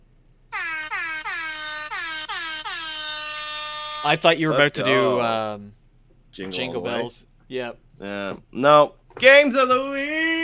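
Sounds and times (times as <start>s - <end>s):
loud brassy air horn honks: 0.5s - 5.2s
speech: 4.0s - 5.8s, 6.4s - 10.2s.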